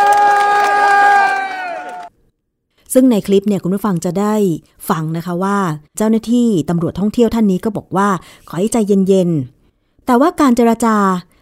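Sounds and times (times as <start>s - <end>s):
crowd cheering: 0.0s - 2.1s
scattered clapping: 0.0s - 2.1s
speech: 2.9s - 11.3s.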